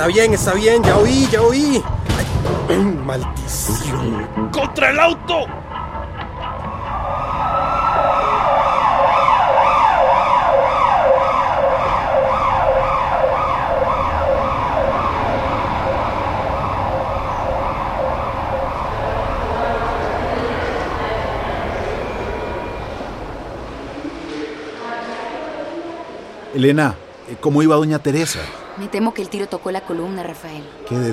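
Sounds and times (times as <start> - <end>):
speech: 0.0 - 5.6, 26.6 - 31.1
ambulance siren: 5.2 - 23.8.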